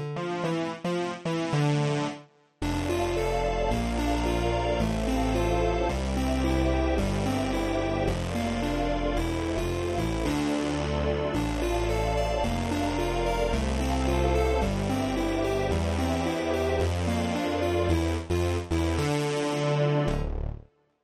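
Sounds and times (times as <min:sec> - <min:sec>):
house synth music: 0:00.2 - 0:20.6.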